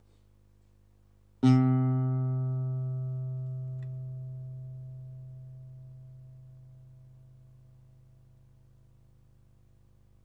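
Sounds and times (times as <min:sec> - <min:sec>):
guitar: 0:01.4 - 0:07.8.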